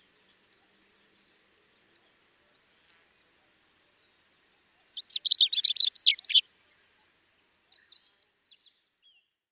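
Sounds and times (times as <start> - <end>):
chestnut-eared bunting calling: 4.8 - 6.4.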